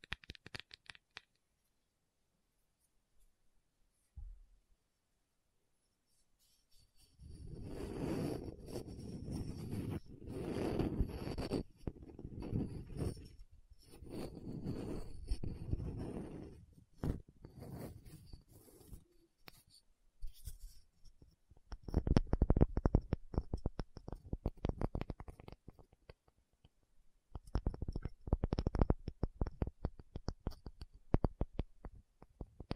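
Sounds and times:
tapping and scratching: 6.4 - 19.7, 20.3 - 32.7.

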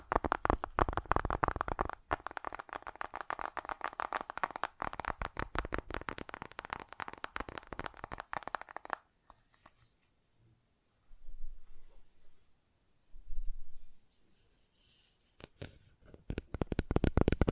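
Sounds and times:
fast tapping: 0.0 - 9.1, 16.1 - 17.5.

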